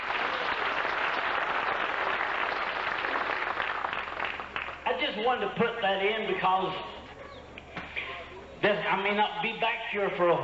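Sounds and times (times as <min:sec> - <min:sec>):
audience clapping: 0:00.0 - 0:05.0
speech: 0:05.1 - 0:07.0, 0:08.6 - 0:10.4.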